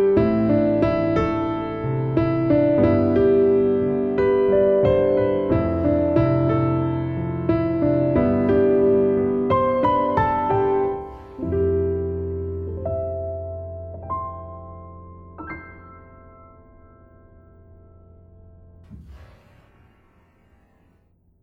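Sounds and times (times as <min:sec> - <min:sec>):
grand piano noise: 0:00.0 - 0:21.0.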